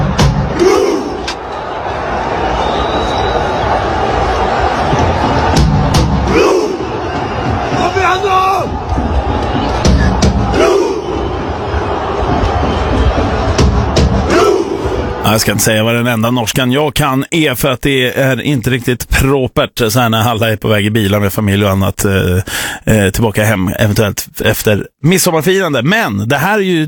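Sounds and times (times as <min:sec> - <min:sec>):
Norwegian football fans chanting: 0:00.0 - 0:07.8, 0:08.6 - 0:15.2
speech: 0:15.3 - 0:26.8.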